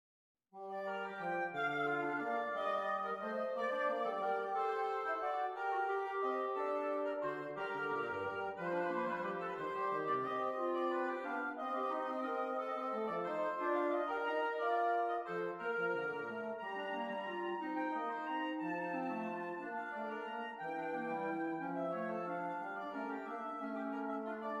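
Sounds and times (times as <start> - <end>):
symphony in G minor: 0.6 - 24.5.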